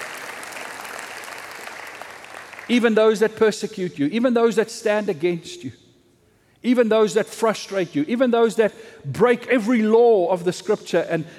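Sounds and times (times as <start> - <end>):
audience applause: 0.0 - 2.7
speech: 2.7 - 5.8, 6.6 - 11.3.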